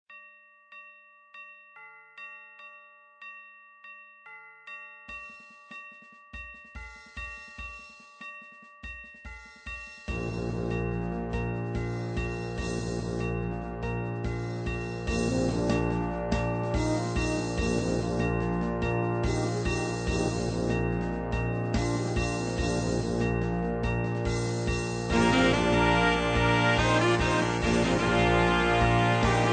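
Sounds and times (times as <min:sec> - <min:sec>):
fanfare: 0:10.1 - 0:29.5.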